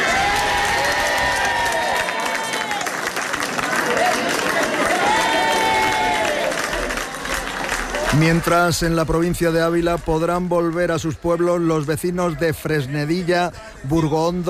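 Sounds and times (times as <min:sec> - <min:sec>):
townspeople applauding: 0:00.0 - 0:12.2
speech: 0:08.2 - 0:14.4.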